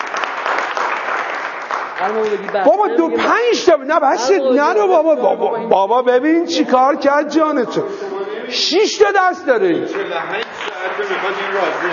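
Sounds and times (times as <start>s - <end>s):
crowd applause: 0.0s - 3.2s, 9.8s - 11.9s
speech: 2.0s - 10.4s, 11.0s - 11.9s.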